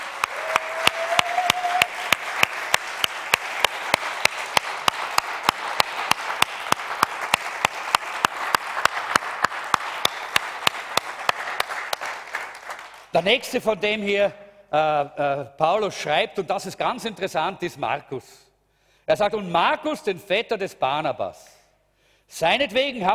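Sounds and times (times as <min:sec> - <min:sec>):
loud crowd applause: 0:00.0 - 0:13.1
speech: 0:13.2 - 0:18.4, 0:19.1 - 0:21.6, 0:22.3 - 0:23.1.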